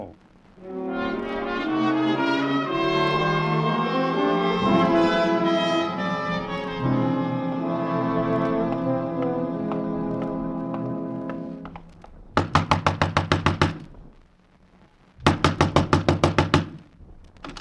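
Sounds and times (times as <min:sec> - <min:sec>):
sustained tone: 0:00.0 - 0:12.3
loud rapid knocking on a door: 0:12.3 - 0:13.8, 0:15.2 - 0:16.8.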